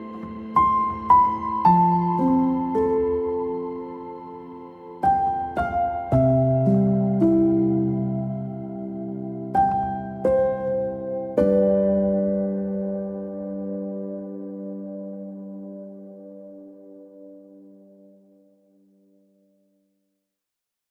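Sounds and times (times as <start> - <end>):
strings: 0.0 - 16.5.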